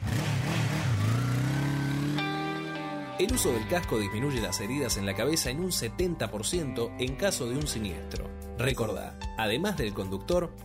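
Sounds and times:
motorcycle engine revving: 0.0s - 3.2s
speech: 3.2s - 10.6s.

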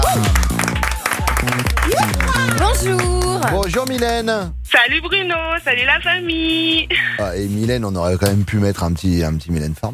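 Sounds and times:
radio studio applause for a caller: 0.0s - 4.3s
speech: 2.8s - 9.9s.

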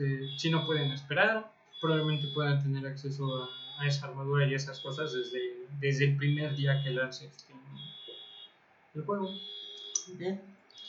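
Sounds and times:
speech: 0.0s - 7.8s, 9.0s - 10.5s
car horn honking outside a studio: 0.0s - 8.5s
car alarm's shrill electronic tone outside a studio: 0.0s - 10.1s.

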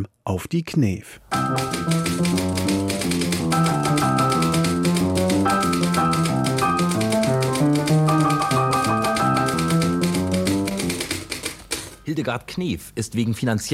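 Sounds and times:
speech: 0.0s - 4.3s, 12.2s - 13.7s
lively piano melody: 1.3s - 11.9s
typewriter typing: 1.3s - 12.1s.

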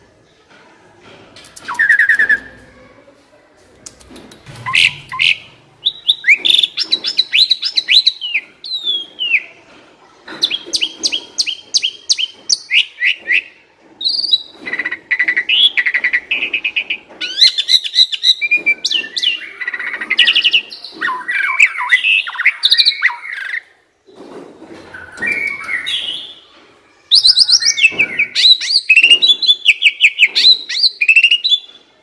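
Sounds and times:
Asian pied starling song: 4.6s - 9.5s, 10.4s - 23.6s, 25.0s - 26.5s, 27.1s - 31.8s.

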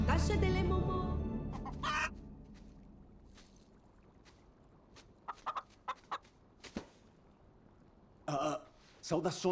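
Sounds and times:
speech: 0.1s - 1.1s, 9.1s - 9.5s
chicken clucking: 1.5s - 2.2s, 5.3s - 6.3s.

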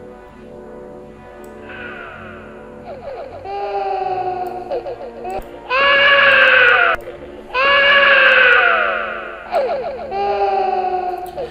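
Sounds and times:
eerie infant-like cries from coffins in a burial cave: 2.9s - 11.4s.

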